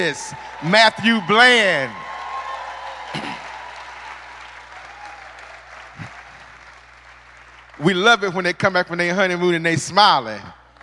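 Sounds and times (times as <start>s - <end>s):
speech: 0.0s - 2.1s, 7.8s - 10.6s
audience hand clapping: 0.0s - 8.3s.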